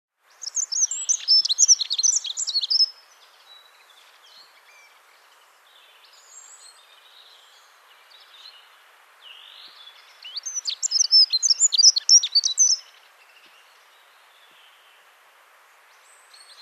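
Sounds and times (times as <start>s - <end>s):
bird twittering and warbling in a forest: 0.4s - 3.0s, 10.0s - 13.7s.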